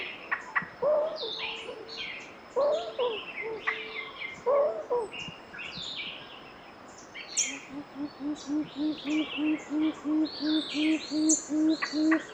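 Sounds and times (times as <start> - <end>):
gray-fronted quail-dove song of low hollow hooting notes in Soplillar Cuba: 0.8 - 1.9, 2.6 - 5.1, 7.5 - 12.3.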